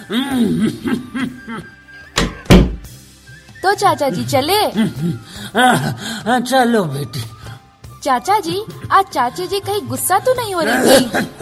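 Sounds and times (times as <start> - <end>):
speech: 0.1 - 1.8, 3.6 - 7.4, 8.0 - 11.4
door being shut: 2.2 - 2.9.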